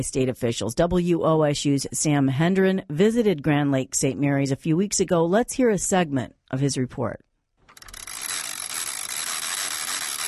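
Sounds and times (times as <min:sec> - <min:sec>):
speech: 0:00.0 - 0:07.3
hand winch ratcheting a sailboat onto its trailer: 0:07.7 - 0:10.2.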